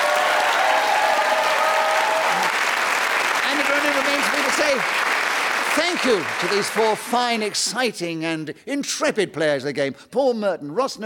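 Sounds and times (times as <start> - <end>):
faint voices and whoops: 0.0 - 2.5
crowd applauding: 0.0 - 7.7
speech: 3.8 - 5.0, 5.8 - 11.0.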